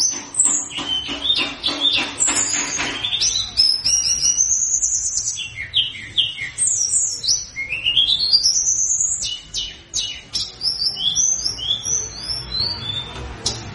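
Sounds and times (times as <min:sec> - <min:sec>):
mountain flowerpecker song of thin high whistles and chittering trills played as a lure: 0:00.0 - 0:13.6.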